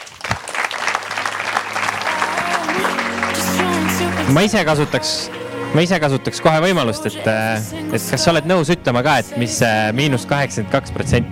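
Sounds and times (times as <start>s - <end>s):
audience applauding: 0.0s - 5.6s
speech: 4.3s - 11.3s.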